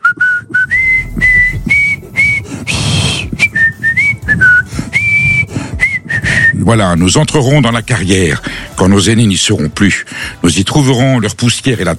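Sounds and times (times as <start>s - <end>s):
person whistling a national anthem: 0.0s - 6.7s
speech: 6.7s - 11.9s.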